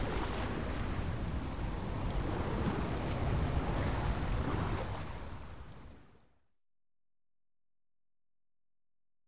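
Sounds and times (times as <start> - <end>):
sailboat general atmosphere: 0.0 - 1.6
waves around a sailboat: 0.0 - 6.2.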